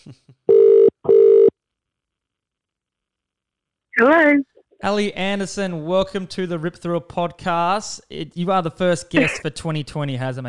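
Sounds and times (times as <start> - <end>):
speech: 0.0 - 0.9, 4.0 - 10.4
phone call ringback tones: 0.5 - 1.5.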